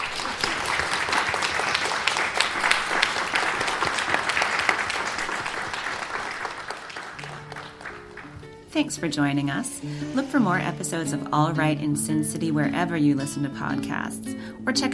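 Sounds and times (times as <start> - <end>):
audience applause: 0.0 - 8.6
speech: 8.8 - 14.9.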